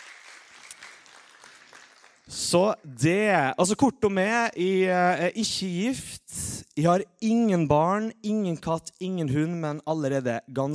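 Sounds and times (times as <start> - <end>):
crowd clapping: 0.0 - 2.6
speech: 2.3 - 10.7.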